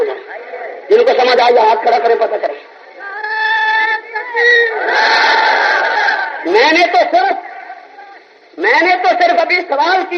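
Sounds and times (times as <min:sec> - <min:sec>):
speech: 0:01.0 - 0:02.6, 0:06.6 - 0:07.5, 0:08.6 - 0:10.1
crowd chanting a slogan: 0:04.2 - 0:06.6.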